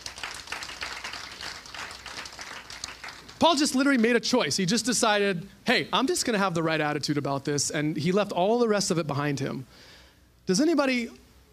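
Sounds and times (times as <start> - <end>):
crowd audience round of applause: 0.0 - 3.4
speech: 3.4 - 9.9, 10.5 - 11.2.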